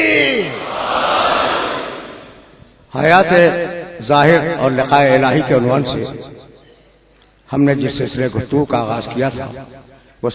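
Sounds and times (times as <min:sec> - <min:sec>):
crowd shouting the Shia battle cry Naara-e-Haidari: 0:00.0 - 0:02.5
speech: 0:03.0 - 0:06.5, 0:07.5 - 0:10.3.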